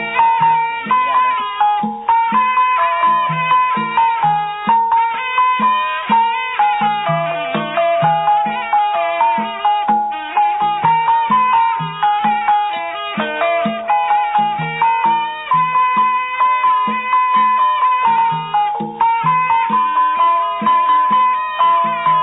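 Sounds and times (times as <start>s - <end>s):
Lao instrumental music on Pii Hmong flute: 0.0s - 22.2s.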